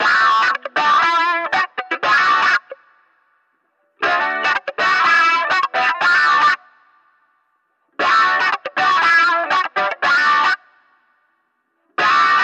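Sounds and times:
funky guitar: 0:00.0 - 0:03.0, 0:03.8 - 0:06.9, 0:07.9 - 0:10.9, 0:11.8 - 0:12.4.

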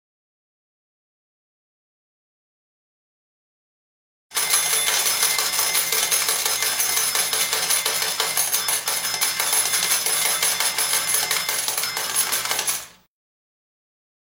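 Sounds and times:
slot machine win coins: 0:04.3 - 0:13.1.

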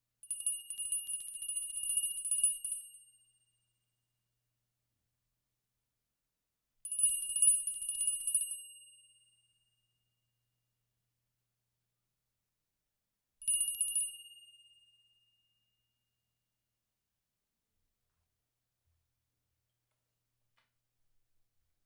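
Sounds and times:
bell: 0:00.2 - 0:03.9, 0:06.8 - 0:09.9, 0:13.4 - 0:15.8.

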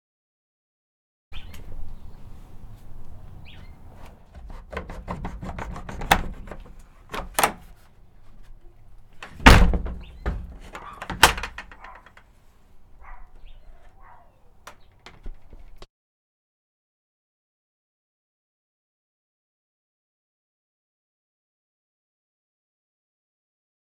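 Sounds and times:
door: 0:04.0 - 0:07.7, 0:09.2 - 0:12.2, 0:14.7 - 0:15.9
lock: 0:04.3 - 0:07.7, 0:09.2 - 0:12.3, 0:13.2 - 0:15.9.

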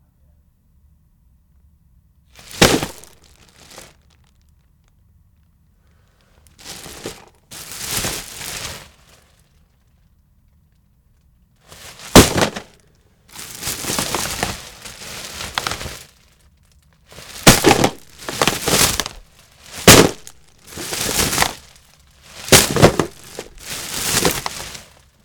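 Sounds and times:
trash bag with DVDs inside dropping: 0:02.4 - 0:04.2, 0:06.6 - 0:09.3, 0:11.7 - 0:16.3, 0:17.1 - 0:25.2.

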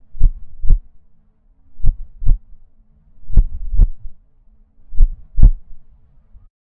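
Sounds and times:
heartbeat: 0:00.0 - 0:00.9, 0:01.8 - 0:02.6, 0:03.2 - 0:04.2, 0:04.9 - 0:05.8.

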